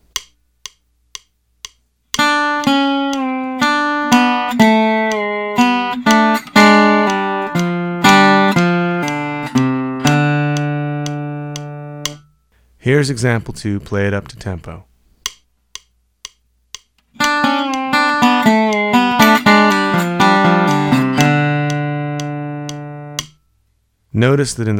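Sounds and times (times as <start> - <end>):
metronome clicks: 0.0 - 12.4, 15.2 - 23.4
guitar lick with hammer-ons, pull-offs, slides and double stops: 2.2 - 12.3, 17.0 - 23.4
speech: 12.9 - 14.9, 24.2 - 24.7.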